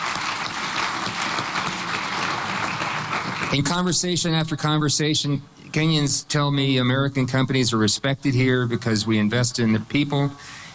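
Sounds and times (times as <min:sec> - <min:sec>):
large audience applause: 0:00.0 - 0:03.8
speech: 0:03.5 - 0:10.6.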